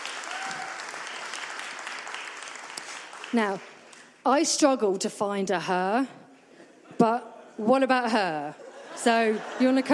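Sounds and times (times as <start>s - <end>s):
audience applause: 0.0s - 4.0s
speech: 3.3s - 6.2s, 7.0s - 9.9s.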